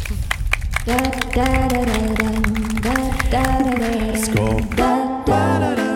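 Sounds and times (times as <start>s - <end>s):
applause: 0.0s - 4.9s
speech: 0.8s - 2.6s, 3.3s - 5.8s.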